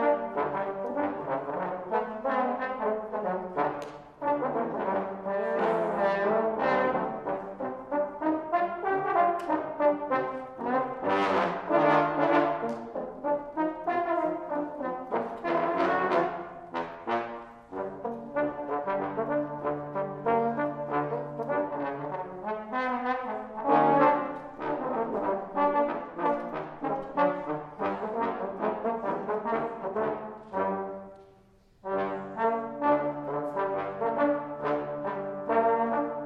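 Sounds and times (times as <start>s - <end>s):
trombone quartet playing: 0.0s - 36.2s.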